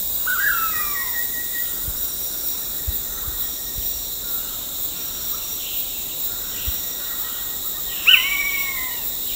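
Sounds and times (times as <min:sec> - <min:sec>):
blue-headed pitta calling at Danum: 0:00.2 - 0:01.8, 0:08.0 - 0:09.2.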